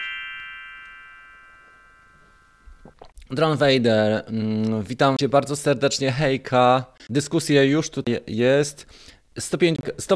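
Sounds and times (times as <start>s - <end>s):
small bell chime: 0.0s - 2.8s
speech: 2.9s - 10.1s.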